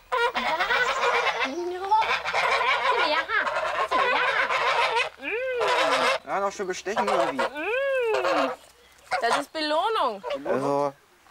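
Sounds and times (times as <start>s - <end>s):
geese honking: 0.0s - 10.8s
speech: 6.4s - 7.6s, 8.2s - 8.6s, 9.2s - 11.0s.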